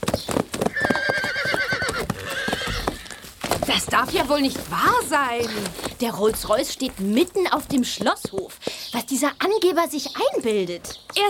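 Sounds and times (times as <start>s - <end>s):
horses galloping: 0.0s - 11.2s
horse whinnying: 0.6s - 3.3s
speech: 3.7s - 11.2s.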